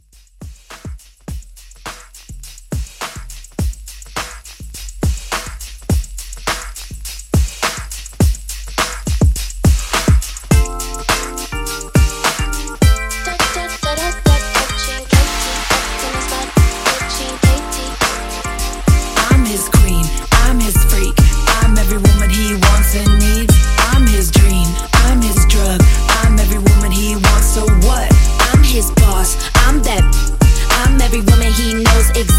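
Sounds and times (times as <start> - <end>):
mixshow drums: 0.0 - 32.3.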